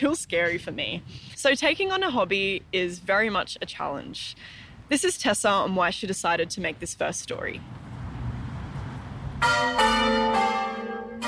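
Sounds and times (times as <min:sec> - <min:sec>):
speech: 0:00.0 - 0:07.8, 0:09.4 - 0:10.3
church bells ringing: 0:09.4 - 0:11.2.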